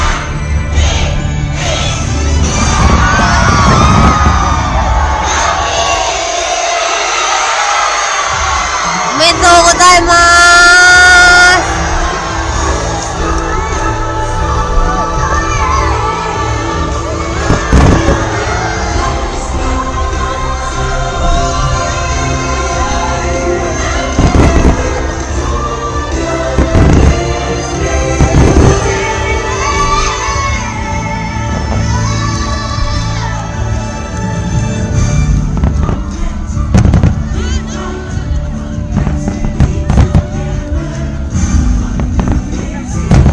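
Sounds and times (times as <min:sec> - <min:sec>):
crowd cheering and shouting: 0:00.0 - 0:40.3
loud music: 0:00.0 - 0:43.3
fireworks booming: 0:02.8 - 0:05.0, 0:17.4 - 0:18.4, 0:24.1 - 0:25.2, 0:26.5 - 0:27.4, 0:28.0 - 0:29.0, 0:35.0 - 0:37.4, 0:38.9 - 0:40.7, 0:41.3 - 0:43.3.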